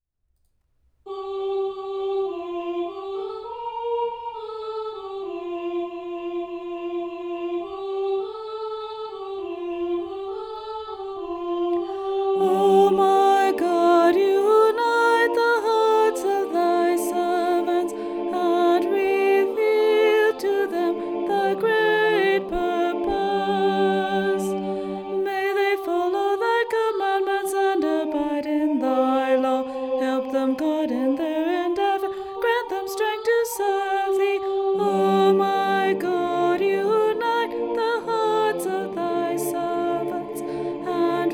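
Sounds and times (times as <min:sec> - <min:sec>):
soprano singing: 0:01.1 - 0:41.3.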